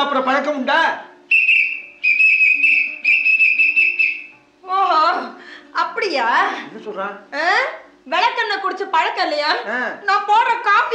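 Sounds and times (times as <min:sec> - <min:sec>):
speech: 0:00.1 - 0:01.1, 0:06.2 - 0:10.9
shrill whistle blasts from a man who swallowed a whistle: 0:01.3 - 0:04.4.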